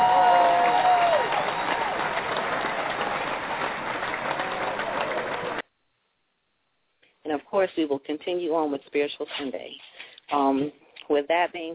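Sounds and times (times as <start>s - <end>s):
audience applause: 0.0s - 5.6s
speech: 7.6s - 11.7s.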